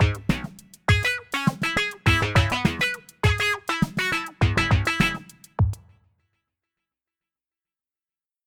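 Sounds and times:
funk drum kit: 0.0s - 5.9s.

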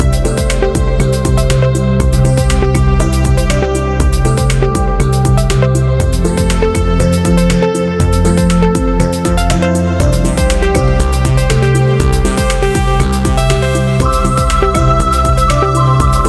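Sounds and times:
soft synth pads: 0.0s - 16.2s.

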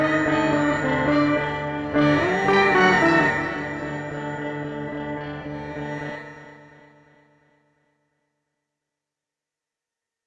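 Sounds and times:
sitar playing: 0.0s - 6.8s.

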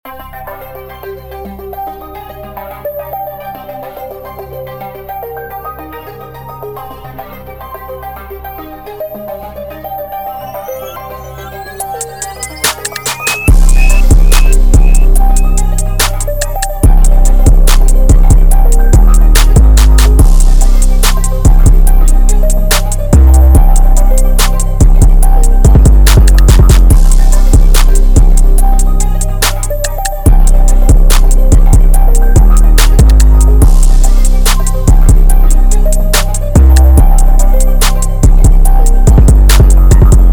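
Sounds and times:
808 bass: 11.8s - 40.3s.

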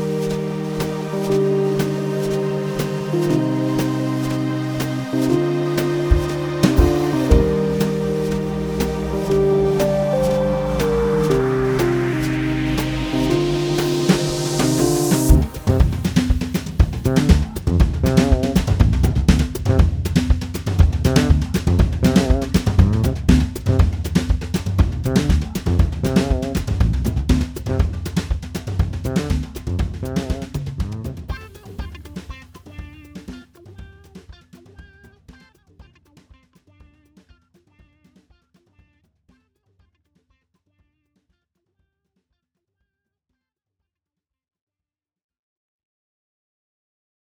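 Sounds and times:
brushed drum grooves: 0.0s - 35.4s.

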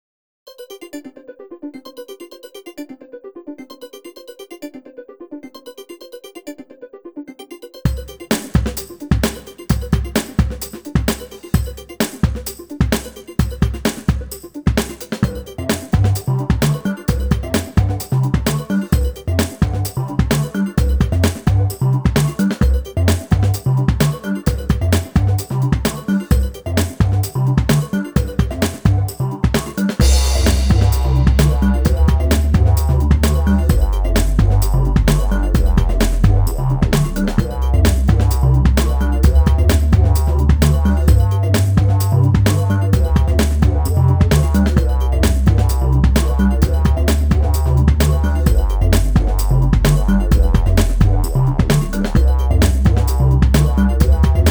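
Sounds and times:
drum breaks: 7.9s - 54.4s.

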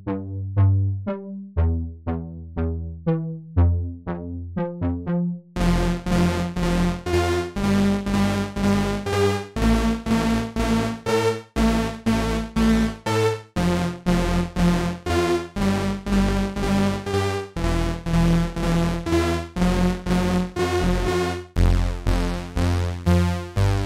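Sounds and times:
mono bass synth: 0.0s - 23.8s.

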